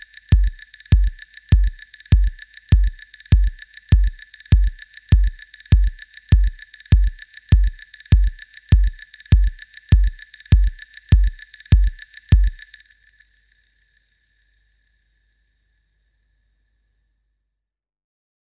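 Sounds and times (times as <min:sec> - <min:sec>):
FX drums: 0:00.3 - 0:12.6.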